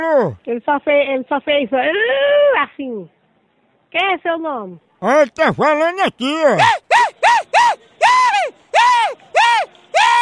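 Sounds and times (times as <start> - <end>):
speech: 0.1 - 3.2, 3.9 - 9.2
person screaming: 6.6 - 10.2.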